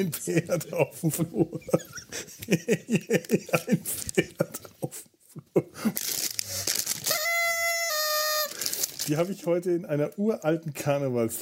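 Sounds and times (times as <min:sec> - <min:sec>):
laughter: 0:00.0 - 0:06.0
speech: 0:00.0 - 0:06.3, 0:09.1 - 0:11.3
party horn noisemaker being blown: 0:06.5 - 0:09.1.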